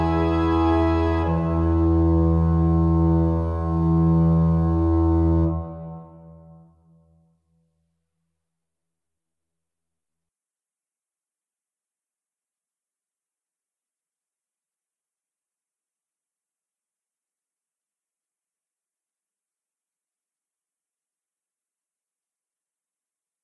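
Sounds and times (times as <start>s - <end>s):
instrumental music: 0.0s - 7.0s.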